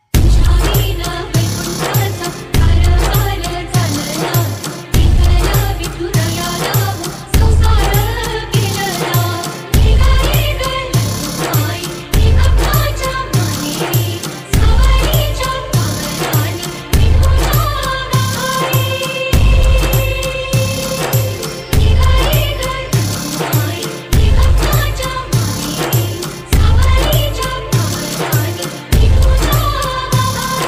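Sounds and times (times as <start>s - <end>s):
song: 0.0s - 30.6s.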